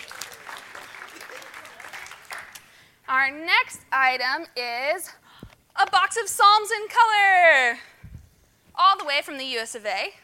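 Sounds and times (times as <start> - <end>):
audience applause: 0.0 - 2.6
speech: 3.1 - 5.2, 5.8 - 7.9, 8.8 - 10.2.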